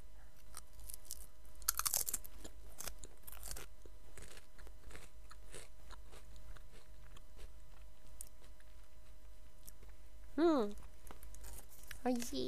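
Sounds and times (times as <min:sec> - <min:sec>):
sour-flavoured potato chips being eaten: 0:00.4 - 0:08.8, 0:11.1 - 0:12.0
speech: 0:10.4 - 0:10.8, 0:12.0 - 0:12.4.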